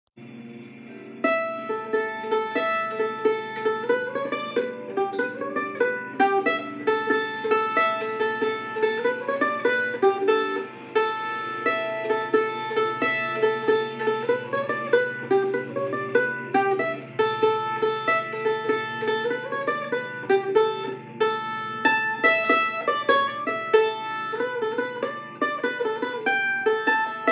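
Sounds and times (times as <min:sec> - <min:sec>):
tune in A mixolydian: 0:00.9 - 0:27.3.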